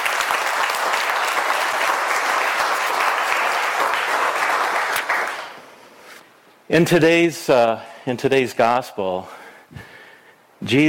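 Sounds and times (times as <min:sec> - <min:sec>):
audience applause: 0:00.0 - 0:05.6
speech: 0:06.7 - 0:09.8, 0:10.6 - 0:10.8.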